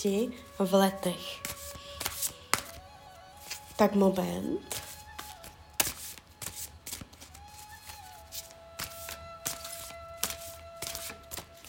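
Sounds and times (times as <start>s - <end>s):
speech: 0.0s - 1.6s, 3.8s - 4.8s
tarot cards being shuffled: 1.4s - 2.8s, 3.4s - 3.7s, 4.7s - 11.6s.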